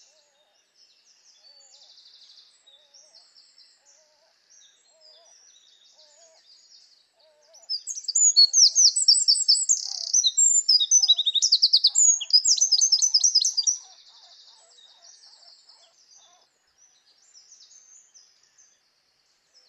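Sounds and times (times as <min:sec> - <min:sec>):
Eurasian wren Troglodytes troglodytes singing: 0:01.0 - 0:18.9.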